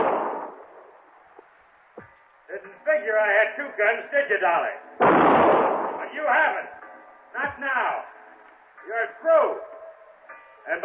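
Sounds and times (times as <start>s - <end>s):
gunshot in a radio drama: 0.0s - 0.8s, 5.0s - 6.1s
speech: 2.9s - 6.8s, 7.4s - 8.2s, 8.9s - 9.7s, 10.6s - 10.8s.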